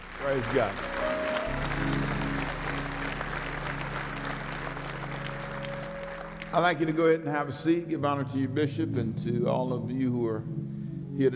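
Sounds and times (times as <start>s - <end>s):
audience clapping hands: 0.0s - 7.3s
steady organ-like drone: 0.0s - 10.8s
speech: 0.2s - 0.9s, 6.5s - 11.3s.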